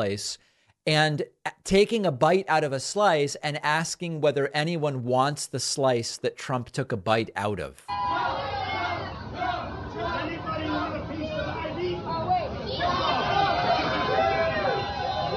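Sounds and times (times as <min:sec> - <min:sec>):
speech: 0:00.0 - 0:08.6
crowd cheering: 0:07.9 - 0:15.3.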